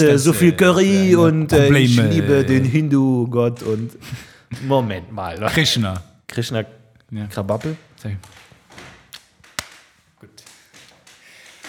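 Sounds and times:
speech: 0.0 - 8.4
wooden chairs creaking and knocking: 7.6 - 11.6.

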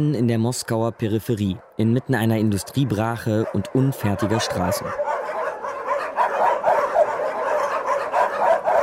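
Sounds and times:
speech: 0.0 - 5.2
many dogs barking and yipping at Moscow's largest animal shelter: 0.2 - 8.8
caged dogs whimpering at an animal shelter: 2.4 - 8.8.

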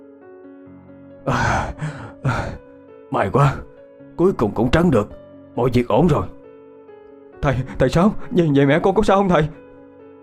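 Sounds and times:
speech: 1.2 - 6.4, 7.4 - 9.6
heavy panting after exertion: 1.3 - 2.6.

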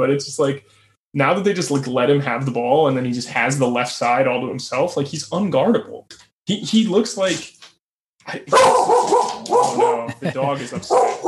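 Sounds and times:
speech: 0.0 - 7.6, 8.3 - 11.2
dog barking in agitated bursts: 8.5 - 10.1, 10.8 - 11.2
laughter: 9.7 - 11.0.

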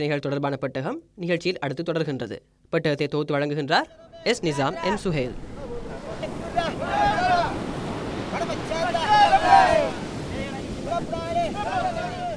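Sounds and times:
speech: 0.0 - 5.6
gusting wind: 3.9 - 12.3
voices in drawn-out sing-song phrases: 3.9 - 12.3
sea waves breaking on a shore: 4.3 - 12.3.

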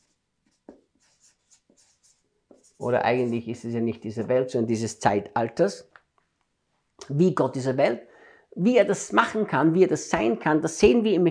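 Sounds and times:
writing words on a board during a sermon: 0.0 - 3.8
speech: 2.8 - 5.9, 7.1 - 11.2.

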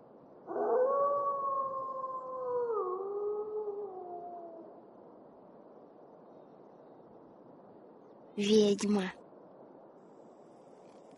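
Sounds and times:
wolves howling: 0.5 - 4.7
speech: 8.4 - 9.2.

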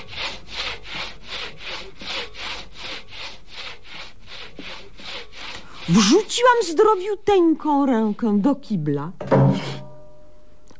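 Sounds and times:
saw cutting through bone as radio comedy sketch sound effect: 0.0 - 7.0
speech: 5.9 - 9.7.

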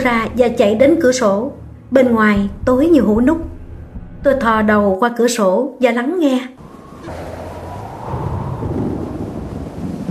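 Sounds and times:
speech: 0.0 - 3.5, 4.2 - 7.3
wind whistling through tree branches: 6.6 - 10.0.

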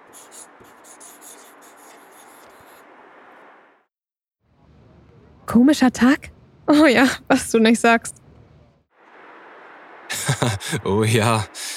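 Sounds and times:
pen scratching on a slip of paper: 0.0 - 2.9
speech: 5.5 - 8.2, 10.8 - 11.6
laughter: 10.1 - 11.7.

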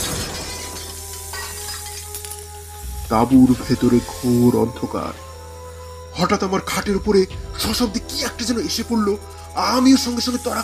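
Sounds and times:
glass of a hurricane lantern shattering: 0.0 - 2.6
speech: 3.1 - 5.2, 6.2 - 10.6.

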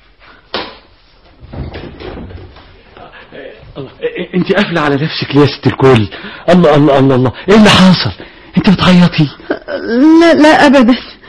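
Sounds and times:
rustling and shuffling: 0.0 - 4.1
house door opening: 1.4 - 2.9
speech: 3.8 - 11.1.

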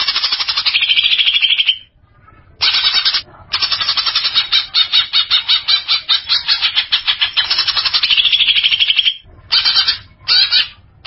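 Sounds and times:
greater green leafbird buzzy chatter: 0.0 - 11.0.

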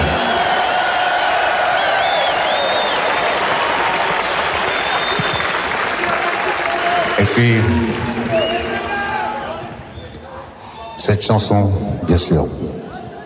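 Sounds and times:
audience applause at a concert: 0.0 - 9.4
speech: 7.4 - 8.2, 11.0 - 12.8.

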